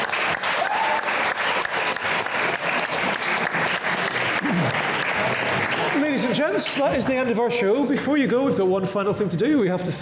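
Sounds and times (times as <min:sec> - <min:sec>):
audience applause at the Science Museum: 0:00.0 - 0:07.3
voices and whoop: 0:00.5 - 0:01.2
speech: 0:06.6 - 0:09.9.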